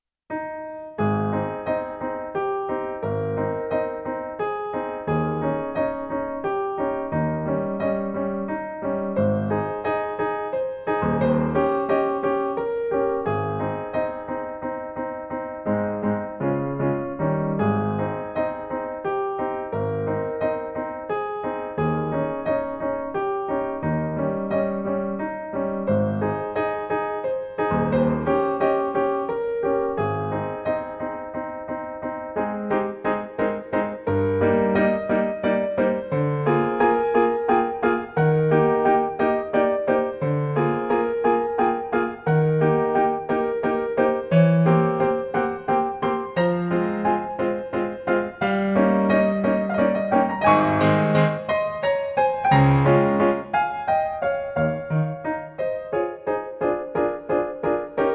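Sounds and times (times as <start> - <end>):
piano piece: 0.3 - 58.1.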